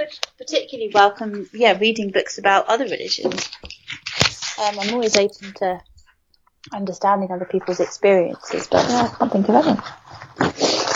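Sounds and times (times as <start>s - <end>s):
speech: 0.0s - 3.8s, 4.6s - 5.9s, 6.6s - 10.7s
person blowing nose: 10.4s - 10.9s.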